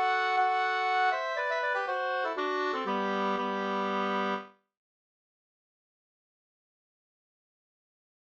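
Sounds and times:
polska folk dance tune: 0:00.0 - 0:04.5.

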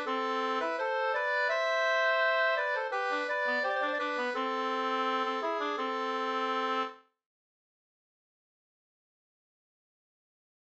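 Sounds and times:
ganglat folk walking tune in A minor: 0:00.0 - 0:07.0.

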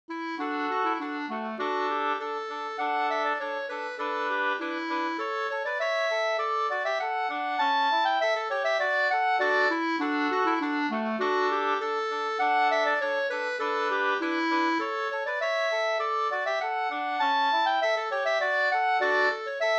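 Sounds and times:
quadrille music: 0:00.1 - 0:19.7.

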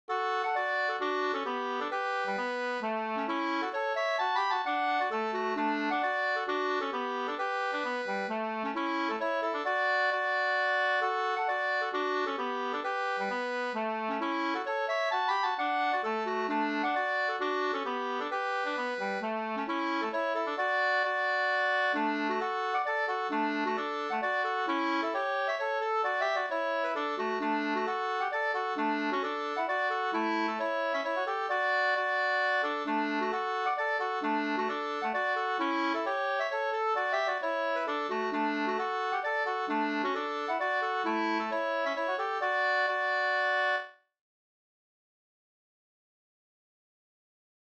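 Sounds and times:
hambo polska dance tune: 0:00.1 - 0:43.9.

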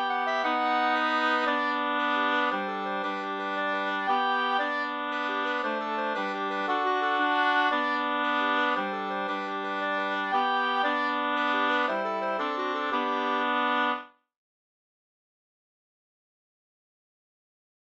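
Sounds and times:
two-part polska: 0:00.0 - 0:14.0.

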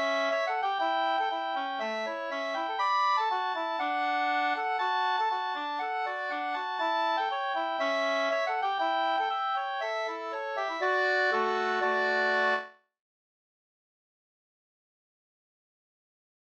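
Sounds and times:
polka music: 0:00.0 - 0:12.7.

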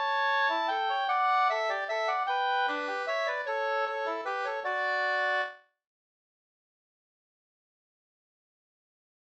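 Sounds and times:
waltz in two parts: 0:00.0 - 0:05.6.

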